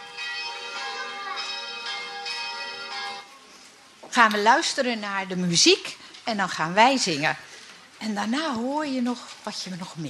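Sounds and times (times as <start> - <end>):
church bells ringing: 0.0 - 3.3
speech: 4.2 - 10.0.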